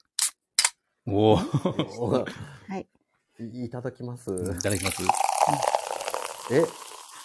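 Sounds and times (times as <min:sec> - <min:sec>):
speech: 0:01.1 - 0:05.8, 0:06.5 - 0:06.8
beer can being cracked open: 0:04.4 - 0:06.9.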